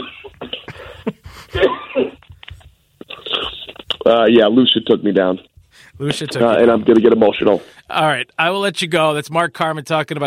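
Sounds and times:
breathy throat clearing: 0.0s - 0.9s, 1.6s - 2.2s
person coughing: 0.0s - 2.2s, 3.1s - 3.7s
speech: 1.5s - 2.2s, 4.1s - 10.2s.

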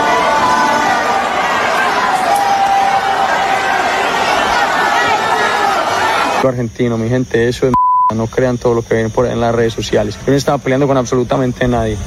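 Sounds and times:
crowd shouting and chattering: 0.0s - 6.5s
speech: 6.4s - 12.0s.

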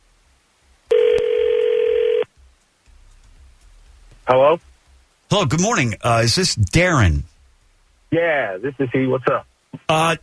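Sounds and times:
electronic telephone ring tone: 0.9s - 2.3s
speech: 4.3s - 4.7s, 5.3s - 7.3s, 8.1s - 10.2s.

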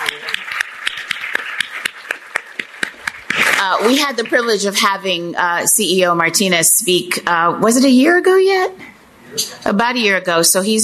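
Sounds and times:
audience round of applause: 0.0s - 4.1s
speech: 3.6s - 10.8s.

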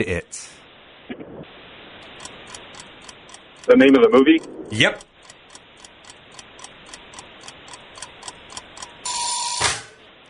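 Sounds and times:
speech: 0.0s - 1.6s, 3.6s - 5.1s
quiz timer ticking: 2.0s - 9.2s.

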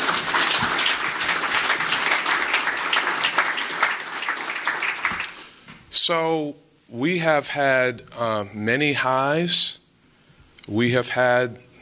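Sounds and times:
audience clapping: 0.0s - 5.8s
speech: 6.1s - 9.8s, 10.7s - 11.7s.

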